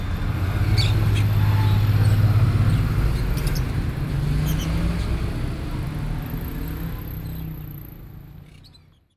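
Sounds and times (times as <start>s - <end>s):
birds in a bird shop: 0.2s - 5.5s, 6.2s - 9.1s.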